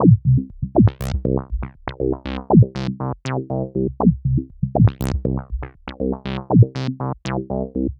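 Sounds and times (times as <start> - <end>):
proto-techno bassline: 0.0 - 2.9, 4.0 - 6.9.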